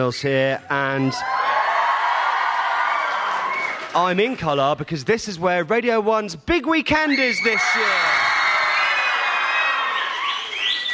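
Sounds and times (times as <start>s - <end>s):
speech: 0.0s - 1.5s, 3.9s - 8.2s
children cheering in school assembly: 1.0s - 3.9s, 7.1s - 10.9s.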